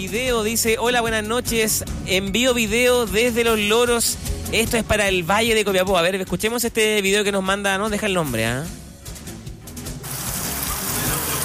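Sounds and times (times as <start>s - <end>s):
speech: 0.0s - 8.8s
heavy rain falling: 10.0s - 11.4s.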